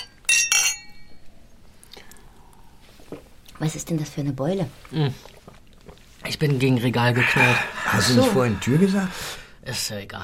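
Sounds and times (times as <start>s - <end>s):
glasses clinking in a toast: 0.0s - 1.2s
speech: 3.6s - 5.4s, 6.4s - 10.2s.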